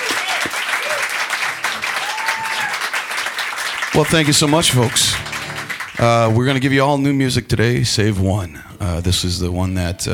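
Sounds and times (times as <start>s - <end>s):
whoops and cheers: 0.0s - 2.9s
crowd applauding: 0.0s - 6.8s
speech: 4.0s - 5.4s, 6.0s - 10.1s.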